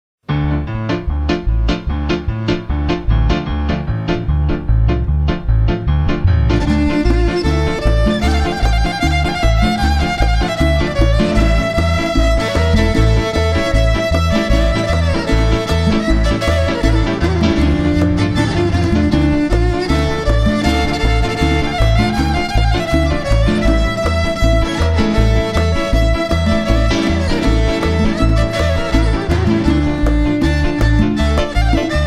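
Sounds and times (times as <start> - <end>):
Rumanian freilach: 0.2 - 32.0.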